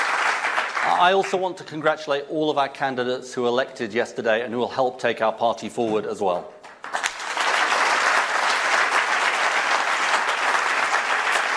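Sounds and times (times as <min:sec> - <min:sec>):
party audience applauding: 0:00.0 - 0:01.5, 0:06.6 - 0:11.5
speech: 0:00.9 - 0:06.6.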